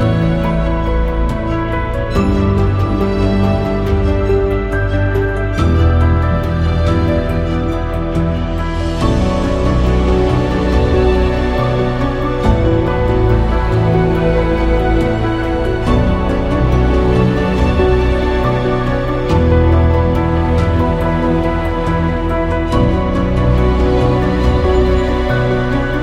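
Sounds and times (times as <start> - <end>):
documentary ambient music: 0.0 - 26.0.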